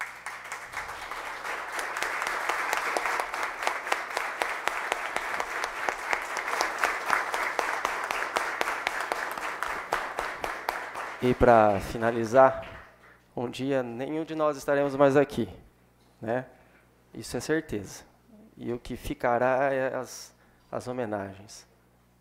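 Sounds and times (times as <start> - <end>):
large standing audience applause: 0.0 - 12.9
speech: 11.2 - 12.7, 13.4 - 15.6, 16.2 - 21.7.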